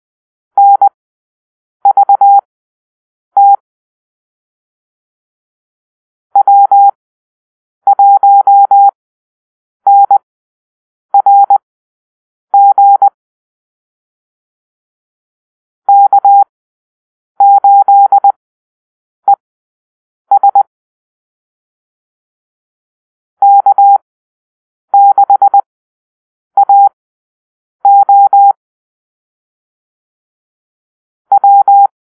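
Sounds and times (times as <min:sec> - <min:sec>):
morse code call-sign drill: 0:00.6 - 0:00.9, 0:01.9 - 0:02.4, 0:03.4 - 0:03.6, 0:06.4 - 0:07.0, 0:07.9 - 0:09.0, 0:09.9 - 0:10.2, 0:11.2 - 0:11.6, 0:12.6 - 0:13.2, 0:15.9 - 0:16.5, 0:17.4 - 0:18.4, 0:20.3 - 0:20.7, 0:23.4 - 0:24.0, 0:25.0 - 0:25.7, 0:26.6 - 0:26.9, 0:27.8 - 0:28.6, 0:31.3 - 0:31.9.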